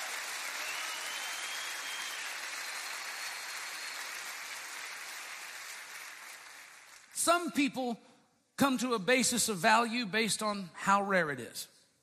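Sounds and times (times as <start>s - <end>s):
audience clapping hands in praise: 0.0s - 7.5s
speech: 7.2s - 11.8s.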